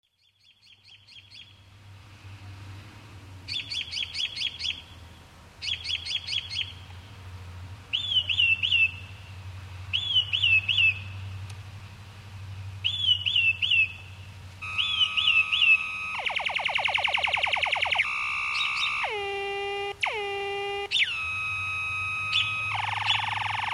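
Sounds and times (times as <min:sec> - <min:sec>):
mockingbird song: 0:00.2 - 0:01.6, 0:03.5 - 0:04.9, 0:05.6 - 0:06.9, 0:07.9 - 0:09.2, 0:09.9 - 0:11.2, 0:12.8 - 0:21.6, 0:22.2 - 0:23.7
low steady hum: 0:01.0 - 0:23.7.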